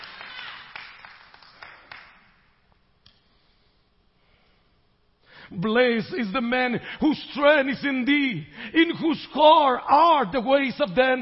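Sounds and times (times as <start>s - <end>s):
audience clapping: 0.0s - 2.6s
speech: 5.5s - 11.1s.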